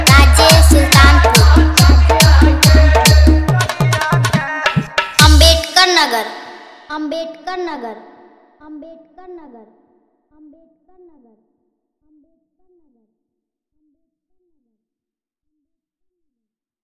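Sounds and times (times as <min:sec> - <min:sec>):
Bhojpuri song bass mix: 0:00.0 - 0:05.7.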